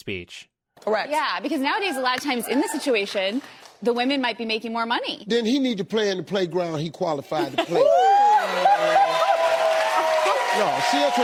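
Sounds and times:
speech: 0.0 - 9.1, 10.6 - 11.2
audience clapping: 2.0 - 4.1, 8.4 - 11.2.

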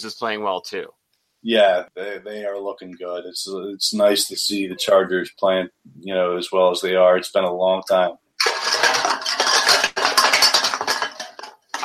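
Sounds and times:
speech: 0.0 - 8.2
domino track toppling: 8.4 - 11.8.

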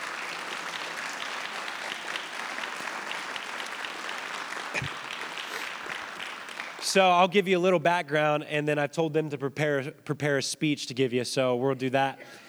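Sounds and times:
audience applause: 0.0 - 7.4
speech: 6.9 - 12.4.

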